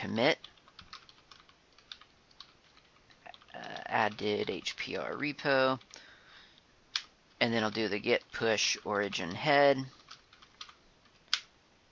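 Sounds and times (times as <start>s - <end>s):
speech: 0.0s - 0.6s, 3.9s - 5.9s, 7.4s - 10.0s
computer keyboard keystrokes typing an SSH key password: 0.4s - 4.7s, 9.9s - 11.5s.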